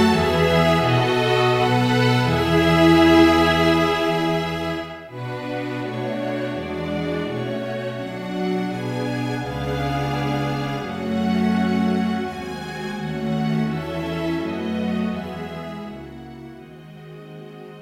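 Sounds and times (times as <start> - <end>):
string orchestra playing: 0.0 - 17.8.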